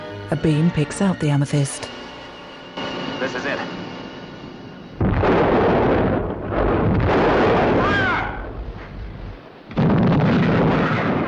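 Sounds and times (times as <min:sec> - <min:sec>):
speech: 0:00.3 - 0:01.9
heavy naval gunfire between the warship Amethyst and fort guns: 0:05.0 - 0:11.2.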